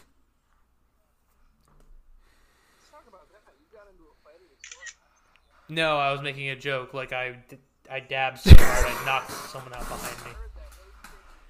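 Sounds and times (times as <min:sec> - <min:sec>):
camera shutter snap: 0:04.6 - 0:05.0
speech: 0:05.7 - 0:10.4.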